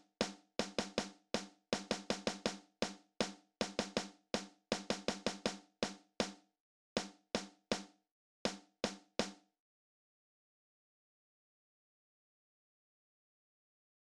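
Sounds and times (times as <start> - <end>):
drum kit: 0.0 - 6.4, 7.0 - 7.9, 8.5 - 9.4.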